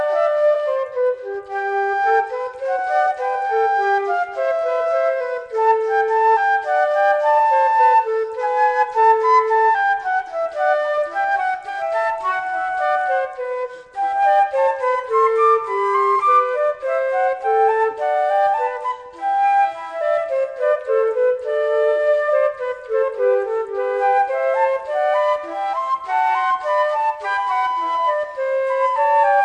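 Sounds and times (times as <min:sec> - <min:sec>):
fugue played by a duo of transverse flutes: 0:00.0 - 0:29.4.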